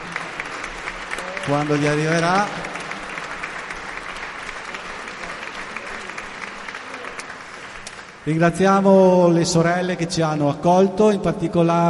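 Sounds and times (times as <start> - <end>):
applause: 0.0 - 8.9
speech: 1.5 - 2.7, 8.2 - 11.8.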